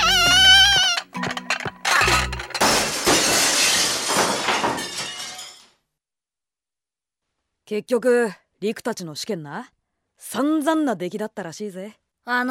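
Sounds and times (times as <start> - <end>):
stack of plates toppling and breaking: 0.6 - 5.8
speech: 7.7 - 12.5.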